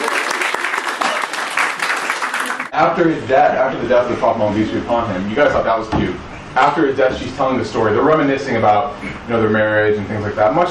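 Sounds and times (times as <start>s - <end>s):
audience applause at a lecture: 0.0s - 2.7s
speech: 2.8s - 10.6s.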